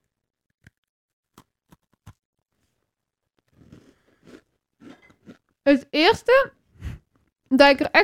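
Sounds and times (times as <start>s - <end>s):
biting into a crunchy homemade round chocolate cookie: 3.4s - 5.5s
chewing a crunchy homemade chocolate cookie: 3.4s - 5.5s
speech: 5.7s - 6.6s, 7.5s - 8.0s.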